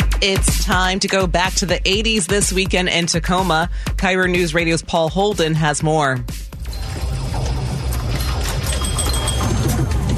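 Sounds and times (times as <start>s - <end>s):
speech: 0.2s - 6.4s
pinball machines at a pinball and arcade show at a convention center: 6.7s - 10.1s.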